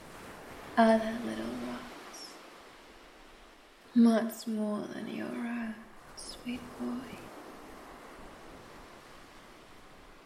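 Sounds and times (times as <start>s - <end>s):
ocean waves crashing against rock: 0.0s - 10.2s
speech: 0.8s - 1.7s, 4.0s - 5.6s, 6.2s - 7.3s.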